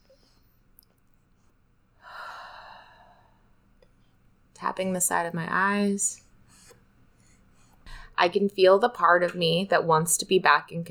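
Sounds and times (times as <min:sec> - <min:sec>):
deep breath inhale during a guided tapping exercise: 0:02.0 - 0:03.5
speech: 0:04.6 - 0:06.2, 0:08.2 - 0:10.8.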